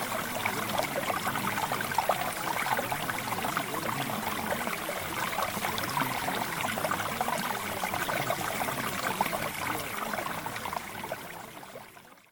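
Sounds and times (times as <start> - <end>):
mountain stream: 0.0 - 12.3.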